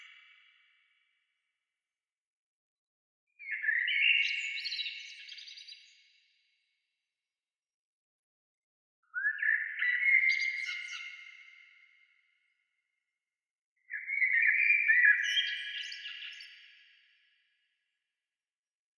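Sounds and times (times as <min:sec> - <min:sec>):
bird singing twittering phrases: 0:03.4 - 0:05.8, 0:09.2 - 0:11.5, 0:13.9 - 0:16.5.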